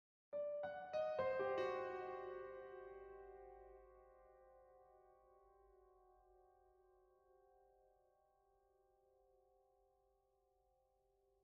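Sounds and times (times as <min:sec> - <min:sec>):
piano cue in C minor sharp 11: 0:00.4 - 0:05.7.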